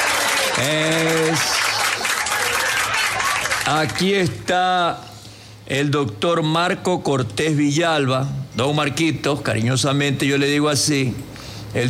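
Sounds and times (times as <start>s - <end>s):
audience applause: 0.0s - 4.2s
speech: 0.6s - 1.6s, 3.7s - 11.8s.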